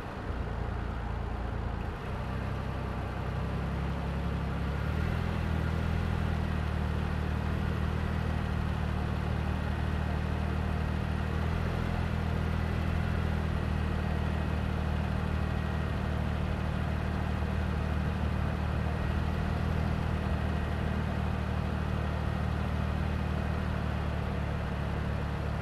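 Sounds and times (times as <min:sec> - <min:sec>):
2005 Toyota Highlander V6 driving slowly, onboard: 0:00.0 - 0:25.5.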